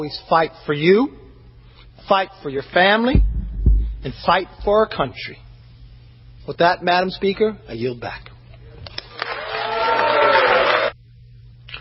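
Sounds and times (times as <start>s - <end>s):
speech: 0.0s - 1.2s, 2.0s - 3.3s, 4.0s - 5.4s, 6.4s - 8.3s
scattered applause in legislative chamber: 9.0s - 11.0s.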